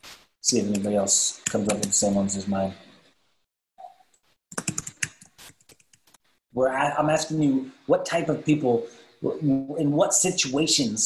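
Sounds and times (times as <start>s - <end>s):
speech: 0.4s - 2.9s, 6.6s - 11.0s
typing on a computer keyboard into a chat box: 0.7s - 2.0s, 4.5s - 6.1s.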